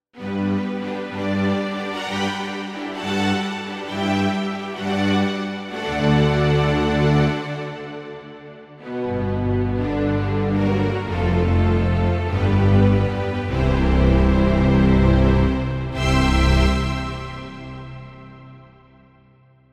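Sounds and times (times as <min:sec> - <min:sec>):
strings: 0:00.2 - 0:19.3.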